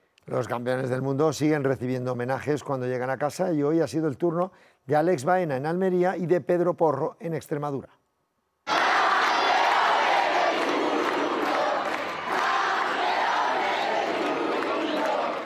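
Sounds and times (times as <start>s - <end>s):
speech: 0.3s - 8.0s
crowd cheering and applauding: 8.7s - 15.4s.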